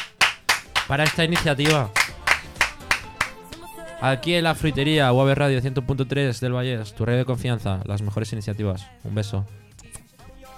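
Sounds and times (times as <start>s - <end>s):
applause: 0.0s - 3.7s
speech: 0.9s - 2.0s, 4.0s - 9.7s.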